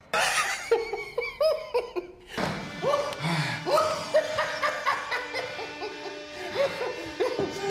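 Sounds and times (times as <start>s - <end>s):
person laughing: 0.1s - 7.6s.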